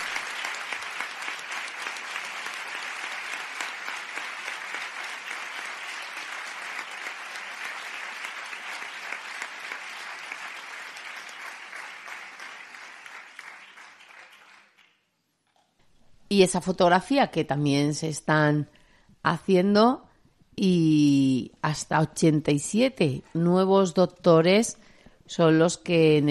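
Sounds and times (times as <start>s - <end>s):
audience applause at graduation ceremony: 0.0s - 15.0s
speech: 16.3s - 20.0s, 20.6s - 26.3s.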